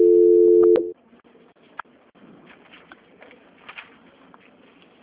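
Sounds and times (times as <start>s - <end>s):
telephone tone during a call transfer: 0.0s - 0.9s.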